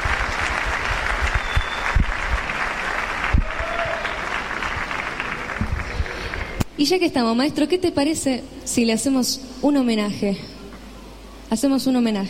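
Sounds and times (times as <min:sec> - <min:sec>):
audience applause: 0:00.0 - 0:06.6
speech: 0:06.8 - 0:10.5, 0:11.5 - 0:12.2.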